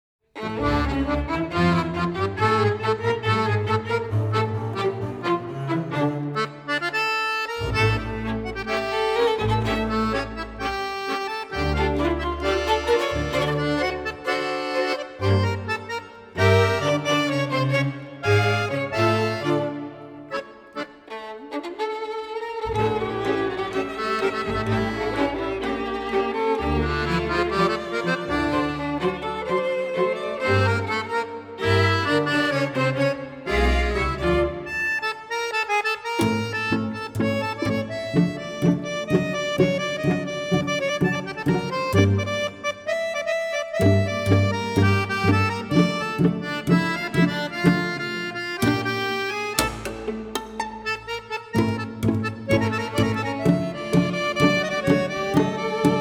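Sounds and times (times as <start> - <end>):
Moroccan tango music: 0.4 - 55.9.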